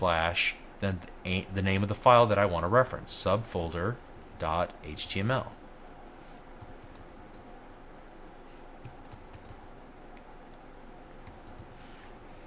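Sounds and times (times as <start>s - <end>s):
speech: 0.0s - 5.6s
typing on a computer keyboard: 6.6s - 7.8s, 8.8s - 9.7s, 11.2s - 11.9s.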